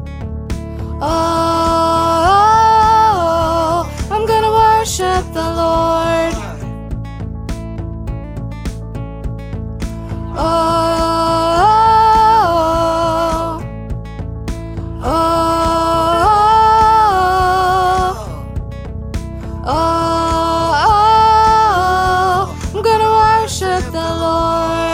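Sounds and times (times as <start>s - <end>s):
soprano singing: 1.0s - 6.8s, 10.3s - 13.7s, 15.0s - 18.5s, 19.6s - 24.9s.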